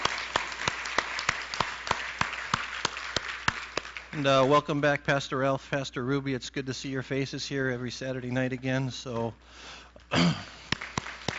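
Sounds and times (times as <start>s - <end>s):
church congregation applauding at a Saturday evening service: 0.0s - 4.8s, 10.4s - 11.3s
low hiss: 0.0s - 11.3s
speech: 4.1s - 10.6s.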